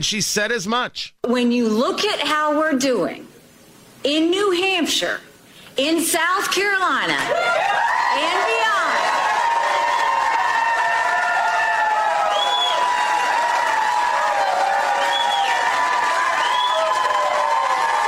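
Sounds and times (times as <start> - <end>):
speech: 0.0 - 3.3, 4.0 - 8.6
crowd cheering at a Republican primary rally in Iowa: 7.3 - 18.0
whistle-like shrieks: 12.2 - 13.0, 15.0 - 15.7, 16.4 - 17.1.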